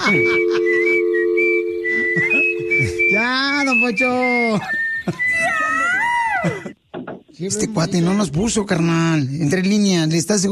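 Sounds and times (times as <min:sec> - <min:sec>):
person whistling: 0:00.0 - 0:06.1
speech: 0:00.1 - 0:00.4, 0:03.7 - 0:05.3, 0:07.4 - 0:10.4.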